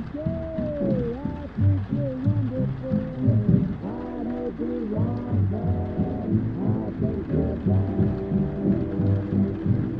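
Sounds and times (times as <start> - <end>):
muffled oldies music from another room: 0.0 - 9.9.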